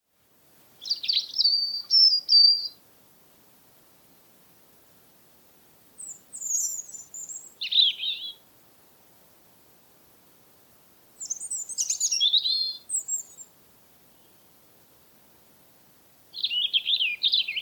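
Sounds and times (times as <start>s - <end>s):
European robin song: 0.8s - 2.8s, 6.0s - 8.4s, 11.2s - 14.6s, 16.3s - 17.6s.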